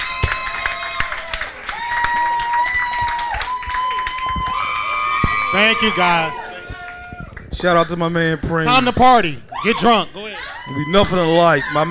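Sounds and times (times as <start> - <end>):
live audience clapping: 0.0 - 8.0
speech: 5.5 - 6.4, 7.6 - 11.8.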